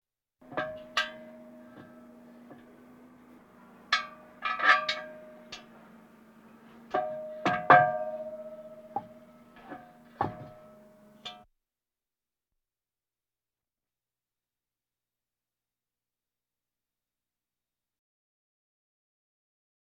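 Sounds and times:
military vehicles: 0.4s - 11.4s.

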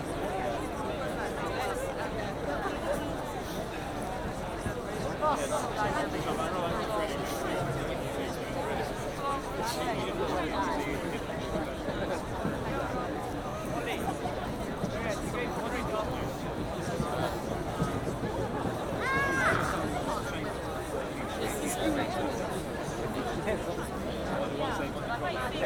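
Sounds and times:
large crowd outdoors: 0.0s - 25.6s.

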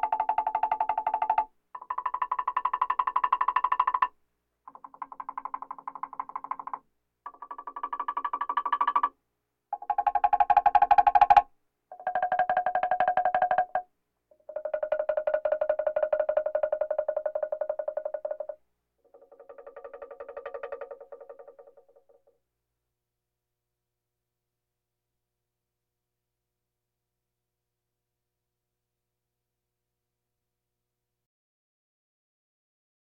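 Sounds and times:
bongos: 0.0s - 22.3s.

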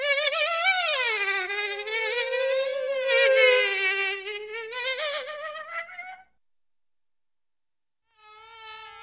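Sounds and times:
cartoon bees and insects buzzing: 0.0s - 6.2s.

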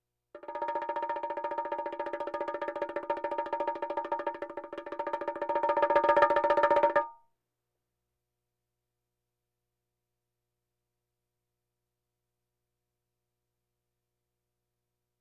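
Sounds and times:
bongos: 0.4s - 7.2s.

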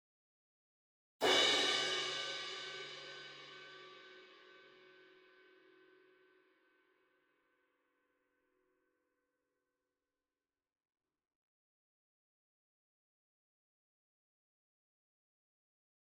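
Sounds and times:
cymbal crash hit hard with beater: 1.2s - 4.1s.

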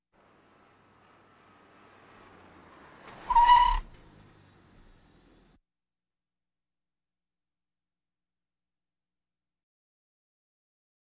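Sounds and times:
various automobiles: 0.0s - 5.6s.

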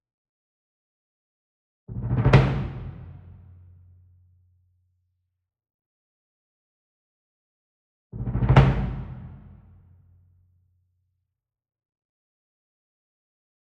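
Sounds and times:
marching bass drum roll with soft medium beater: 1.9s - 3.4s, 8.2s - 9.6s.

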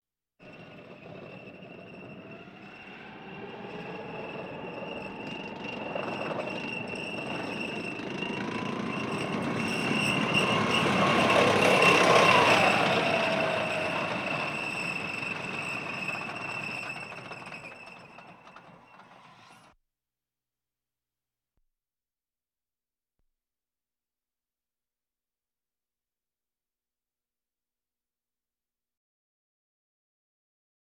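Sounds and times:
military vehicles: 0.4s - 19.7s.

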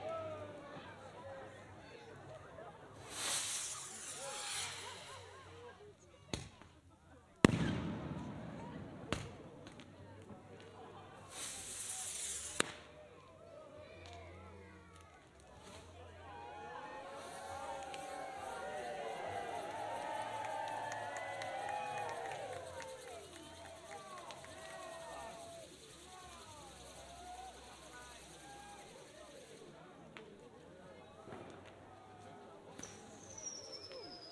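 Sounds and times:
people at a firework display: 0.0s - 34.3s
firework display outdoors: 3.0s - 6.8s, 7.4s - 13.0s, 16.8s - 29.6s, 31.2s - 34.3s.

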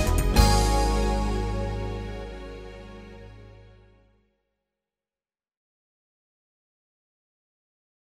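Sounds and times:
light jazz music: 0.0s - 4.1s.

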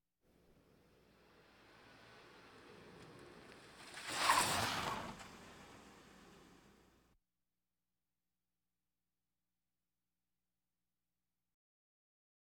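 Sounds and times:
various automobiles: 0.3s - 7.1s.

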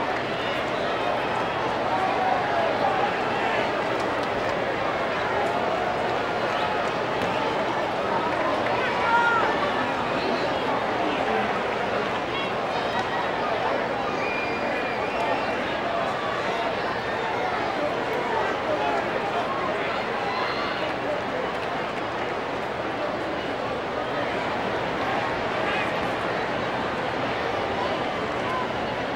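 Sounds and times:
baseball crowd ambience: 0.0s - 29.1s.

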